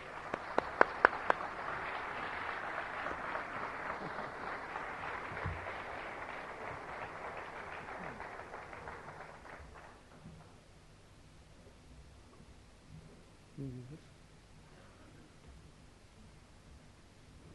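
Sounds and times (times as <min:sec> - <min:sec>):
audience applause: 0:00.0 - 0:10.5.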